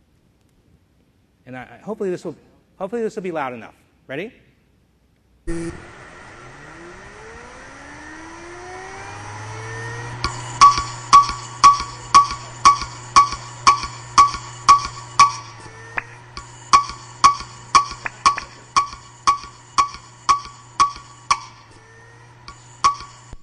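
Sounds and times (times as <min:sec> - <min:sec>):
speech: 0:01.5 - 0:04.4, 0:05.5 - 0:05.9
Western Digital hard drive crashing with heads failing: 0:09.8 - 0:23.4.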